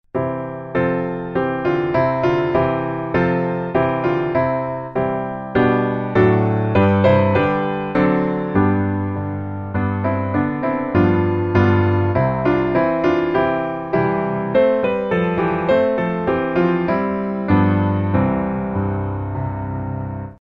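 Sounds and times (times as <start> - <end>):
piano: 0.0 - 20.4.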